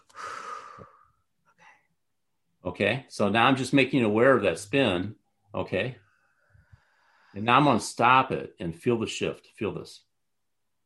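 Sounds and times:
deep breath: 0.0 - 2.0, 6.0 - 7.4
speech: 2.8 - 6.0, 7.4 - 10.1.

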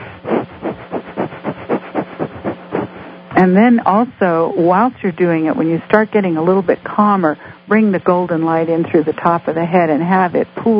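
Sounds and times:
rapid panting through the nose: 0.0 - 3.1
speech: 3.4 - 10.7.

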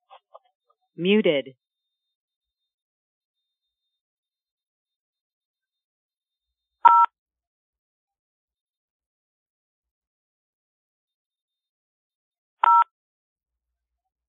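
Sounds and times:
speech: 1.0 - 1.6
touch-tone telephone dialing beeps: 6.8 - 7.1, 12.6 - 12.9.

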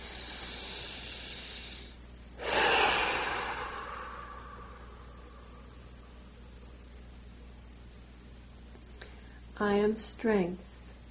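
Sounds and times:
deep breath during a guided meditation: 0.0 - 6.3
speech: 9.6 - 10.7.

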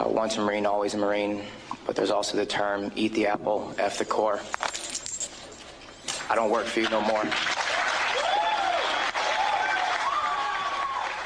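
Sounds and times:
speech: 0.2 - 4.7, 6.3 - 7.5
audience applause: 7.1 - 11.2.

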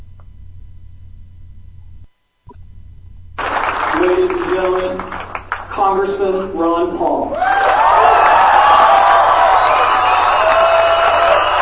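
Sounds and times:
enthusiastic crowd cheering: 3.4 - 5.7, 7.3 - 11.6
clapping: 3.4 - 5.8, 7.4 - 11.6
speech: 5.8 - 7.7.

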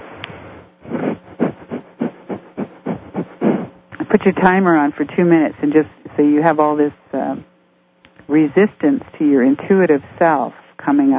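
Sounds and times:
rapid panting breaths through the nose: 0.8 - 3.8
speech: 4.1 - 7.5, 8.3 - 11.1.

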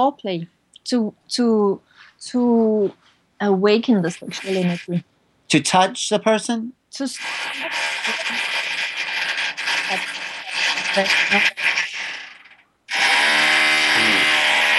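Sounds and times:
speech: 0.0 - 8.6, 9.9 - 10.2, 10.9 - 11.8
power drill running: 7.2 - 14.7.

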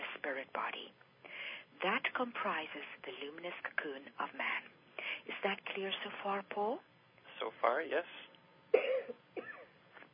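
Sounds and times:
speech: 0.3 - 1.0, 1.8 - 4.7, 5.4 - 8.2
person coughing after tea went down the wrong way: 8.7 - 9.8.

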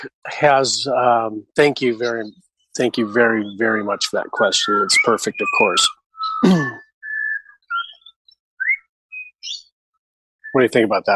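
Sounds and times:
speech: 0.0 - 6.8, 10.5 - 11.1
birds chirping and whistling: 0.3 - 9.8, 10.4 - 11.1.

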